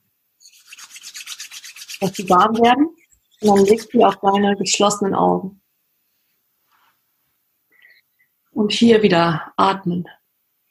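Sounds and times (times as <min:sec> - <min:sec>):
rubbing palms of hands together: 0:00.4 - 0:04.6
speech: 0:02.0 - 0:05.6, 0:08.6 - 0:10.2.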